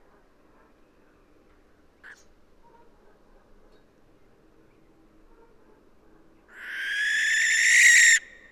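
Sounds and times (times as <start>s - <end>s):
barn owl Tyto alba hissing screeches: 6.5s - 8.4s.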